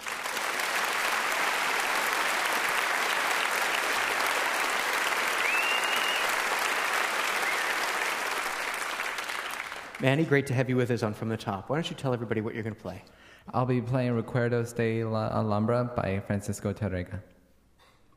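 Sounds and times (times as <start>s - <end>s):
audience applause welcoming a performer: 0.0s - 10.2s
speech: 10.0s - 17.3s.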